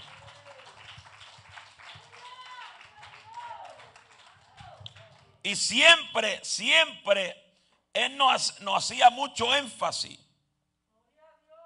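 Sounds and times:
audience applause: 0:00.0 - 0:04.8
speech: 0:05.4 - 0:07.4, 0:08.0 - 0:10.2.

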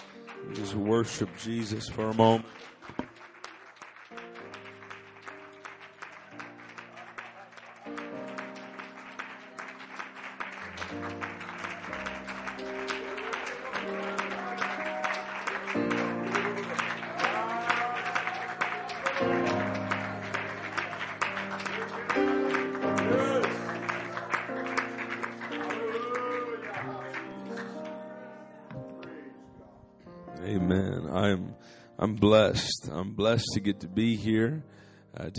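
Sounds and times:
sustained keyboard or organ chords: 0:00.0 - 0:03.2, 0:04.0 - 0:35.3
large crowd clapping: 0:00.0 - 0:28.2
speech: 0:00.5 - 0:03.0, 0:32.5 - 0:35.3.

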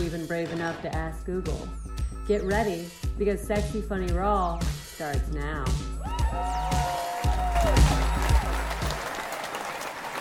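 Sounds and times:
speech: 0:00.0 - 0:06.8
live audience applause: 0:06.5 - 0:10.1.

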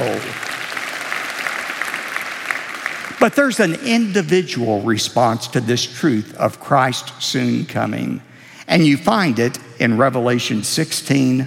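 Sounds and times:
audience applause: 0:00.0 - 0:03.8
speech: 0:03.2 - 0:11.4.

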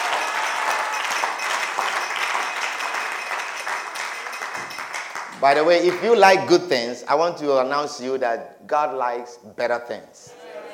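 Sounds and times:
audience clapping: 0:00.0 - 0:06.5
speech: 0:05.4 - 0:10.3.

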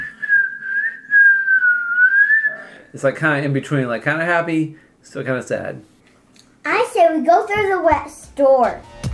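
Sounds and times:
person whistling imitation of a bird: 0:00.0 - 0:02.8
speech: 0:02.9 - 0:05.9, 0:06.6 - 0:08.9.

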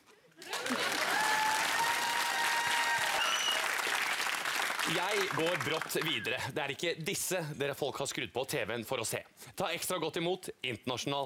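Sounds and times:
audience applause: 0:00.4 - 0:06.3
speech: 0:04.9 - 0:11.2.

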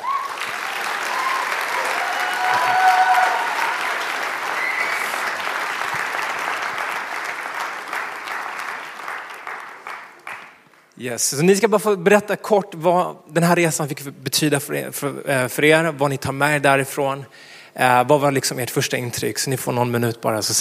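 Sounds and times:
audience applause: 0:00.0 - 0:10.9
speech: 0:11.0 - 0:20.6.

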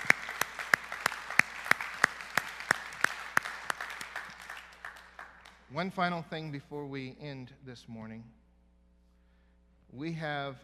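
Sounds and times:
audience clapping: 0:00.0 - 0:06.1
speech: 0:05.7 - 0:08.4, 0:09.9 - 0:10.6.

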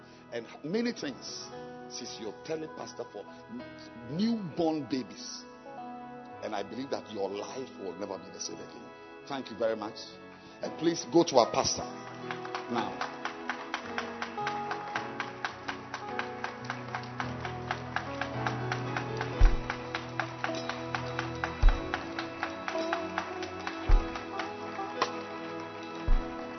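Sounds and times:
speech: 0:00.3 - 0:05.5, 0:06.4 - 0:13.2
audience clapping hands: 0:11.6 - 0:26.5.

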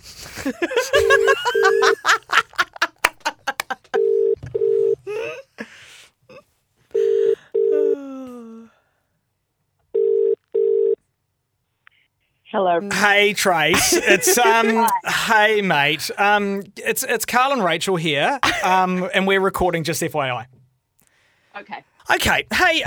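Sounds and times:
people laughing: 0:00.2 - 0:04.0, 0:13.7 - 0:15.6
speech: 0:00.3 - 0:01.8, 0:12.8 - 0:20.5, 0:21.6 - 0:22.8
phone ringing out: 0:00.9 - 0:02.1, 0:04.0 - 0:05.0, 0:06.9 - 0:08.0, 0:10.0 - 0:11.0.

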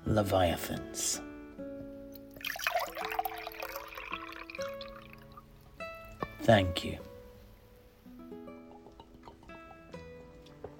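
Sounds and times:
speech: 0:00.1 - 0:01.3, 0:06.4 - 0:07.1
drink being poured into a glass: 0:02.3 - 0:05.6, 0:08.5 - 0:10.1.

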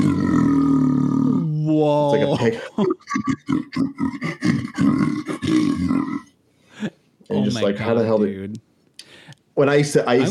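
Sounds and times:
human voice imitating a lion's roar into a metal waste bin: 0:00.0 - 0:01.6, 0:04.6 - 0:06.3
speech: 0:01.8 - 0:06.0, 0:07.4 - 0:08.7, 0:09.6 - 0:10.2.

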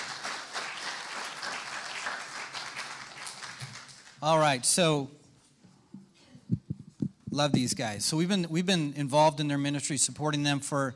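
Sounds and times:
audience applause welcoming guests onto the stage at a ministry gathering: 0:00.0 - 0:04.2
speech: 0:04.2 - 0:05.2, 0:07.4 - 0:10.9.

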